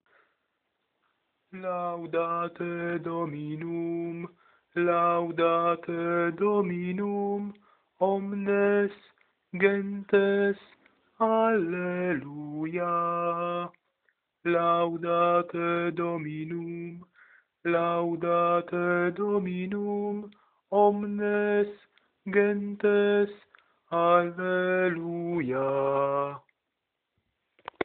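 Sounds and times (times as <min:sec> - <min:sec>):
alto voice singing: 0:01.6 - 0:13.8, 0:14.5 - 0:17.1, 0:17.7 - 0:26.5.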